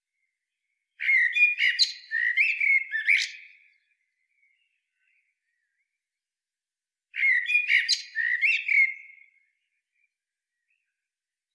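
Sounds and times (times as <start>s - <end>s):
Turdus merula common blackbird singing warbling phrases: 1.0s - 3.6s, 7.2s - 9.2s.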